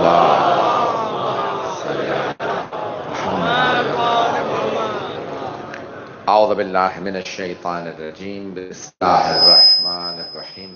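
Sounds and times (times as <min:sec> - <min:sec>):
crowd at a religious gathering chanting salawat in unison: 0:00.0 - 0:05.7
speech: 0:06.4 - 0:10.7.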